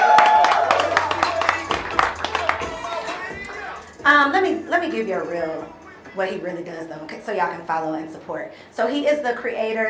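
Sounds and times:
round of applause: 0.0s - 3.2s
speech: 4.2s - 9.8s.

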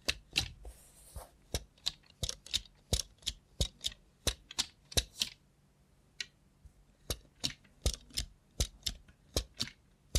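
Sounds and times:
robot hand clicking and tapping: 0.0s - 0.6s, 1.5s - 5.4s, 7.0s - 10.1s
faint low hum: 0.0s - 10.1s.

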